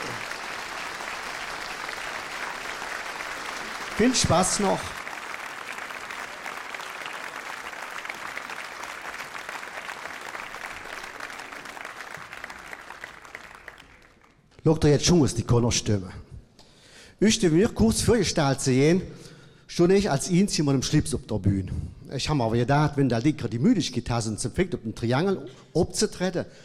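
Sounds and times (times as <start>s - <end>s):
audience applause: 0.0s - 14.4s
speech: 4.0s - 5.0s, 14.7s - 16.3s, 17.2s - 26.6s.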